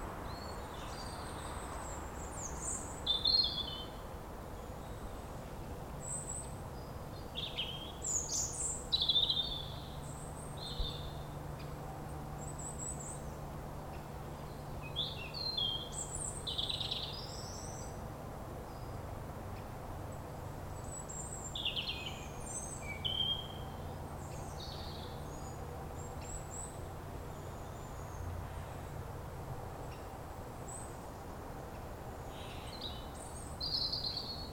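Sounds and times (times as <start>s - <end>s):
forest ambience: 0.0s - 34.5s.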